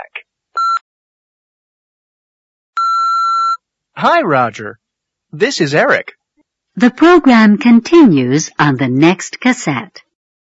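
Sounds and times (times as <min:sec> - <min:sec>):
answering machine beep: 0:00.6 - 0:00.8
speech: 0:04.0 - 0:06.2, 0:06.8 - 0:10.0.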